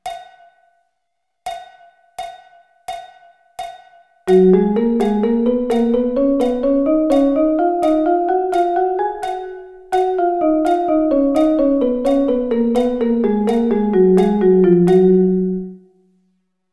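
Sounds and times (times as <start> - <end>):
drum double sticking in G flat: 4.3 - 15.3.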